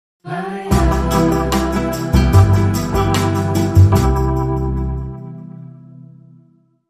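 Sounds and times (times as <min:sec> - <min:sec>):
dreamy bossa nova music: 0:00.3 - 0:05.4
music hit: 0:00.7 - 0:05.7.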